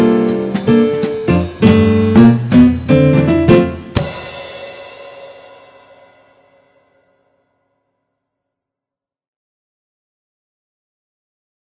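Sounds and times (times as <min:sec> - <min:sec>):
blues music in F: 0:00.0 - 0:05.0.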